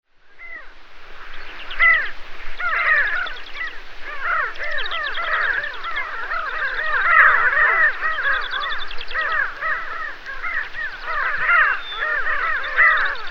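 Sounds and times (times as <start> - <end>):
Pterocles alchata: 0.3 - 13.3.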